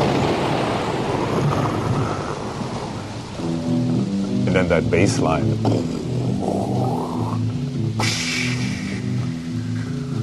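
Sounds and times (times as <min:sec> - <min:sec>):
thunder sound effect: 0:00.0 - 0:04.0
rain sound effect: 0:00.0 - 0:10.2
speech: 0:04.6 - 0:06.0.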